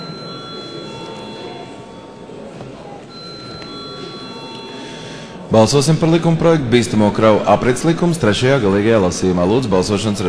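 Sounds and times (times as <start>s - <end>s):
parliament bell ringing before vote: 0.0s - 2.5s, 3.1s - 5.4s
speech: 5.5s - 10.2s.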